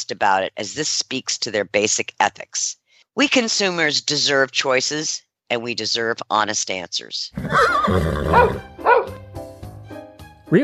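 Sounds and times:
speech: 0.0 - 9.2
horse neighing: 7.3 - 9.1.

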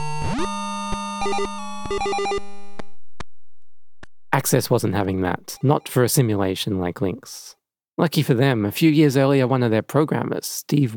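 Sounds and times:
speech: 0.4 - 0.6, 1.2 - 2.5, 4.4 - 10.9
beeps from an early PC's built-in speaker: 4.3 - 6.4.

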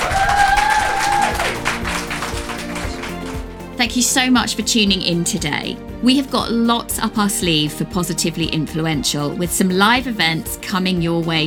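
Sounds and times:
audience applause: 0.0 - 3.5
speech: 3.8 - 11.4.

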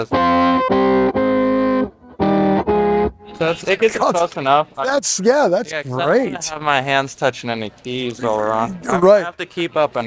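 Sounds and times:
speech: 0.0 - 1.2, 3.4 - 10.0
guitar through Electro-Harmonix C9 organ emulation pedal: 0.0 - 4.2.

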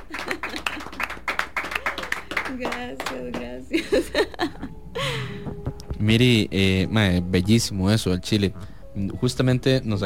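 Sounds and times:
small group applauding in a studio: 0.0 - 3.7
speech: 2.5 - 10.0.

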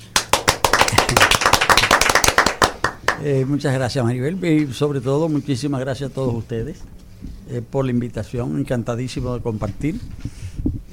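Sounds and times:
audience applause: 0.0 - 3.2
speech: 1.1 - 1.4, 3.2 - 10.4.

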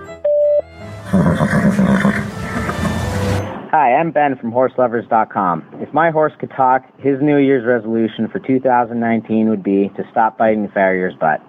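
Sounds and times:
voicemail tone: 0.0 - 3.5
speech: 3.9 - 11.4.

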